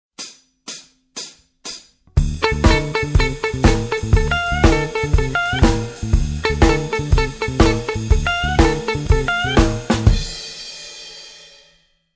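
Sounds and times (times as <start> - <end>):
blues jazz music: 2.1 - 10.4.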